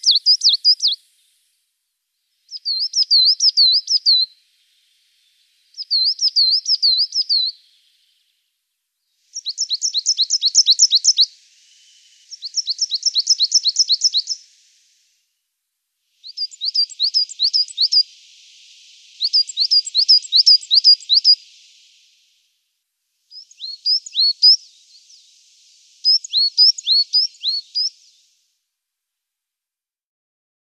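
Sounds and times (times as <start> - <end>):
marsh tit: 0.0 - 1.0, 2.5 - 4.3, 5.7 - 7.5, 9.3 - 11.3, 12.0 - 14.5, 16.2 - 21.7, 23.3 - 28.0.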